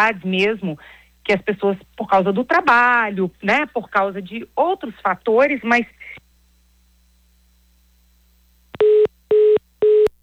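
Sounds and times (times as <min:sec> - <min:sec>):
speech: 0:00.0 - 0:06.2
telephone busy tone after a dropped call: 0:08.8 - 0:10.1.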